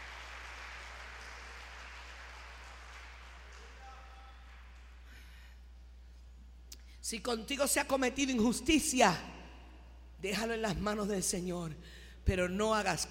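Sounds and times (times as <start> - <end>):
audience applauding: 0.0 - 5.1
speech: 7.0 - 9.3, 10.2 - 13.0.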